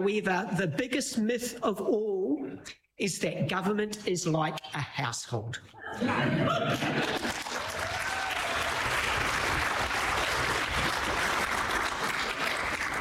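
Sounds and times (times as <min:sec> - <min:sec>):
speech: 0:00.0 - 0:07.4
laughter: 0:05.8 - 0:07.7
crowd applauding: 0:06.7 - 0:12.9.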